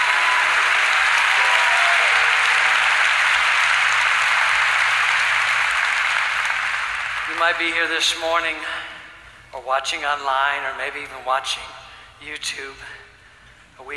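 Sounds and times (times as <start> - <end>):
audience clapping hands: 0.0 - 8.2
speech: 7.4 - 8.9, 9.5 - 13.0.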